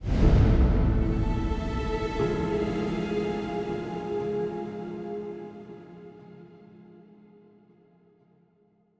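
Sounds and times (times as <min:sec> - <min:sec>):
music stinger: 0:00.0 - 0:06.4.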